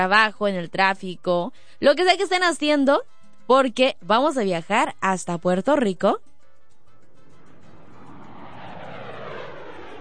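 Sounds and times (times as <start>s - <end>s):
speech: 0.0s - 6.3s
airplane engine, plane about to land: 7.2s - 9.9s.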